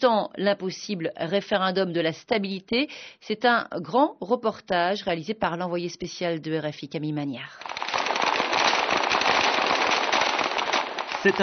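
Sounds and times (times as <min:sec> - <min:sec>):
speech: 0:00.0 - 0:07.8, 0:11.2 - 0:11.4
gunfire from snipers and special forces in central Bishkek: 0:07.7 - 0:11.4.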